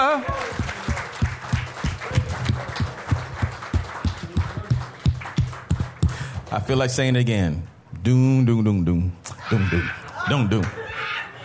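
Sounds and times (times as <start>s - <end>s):
audience clapping hands: 0.0s - 6.8s
speech: 6.7s - 10.8s.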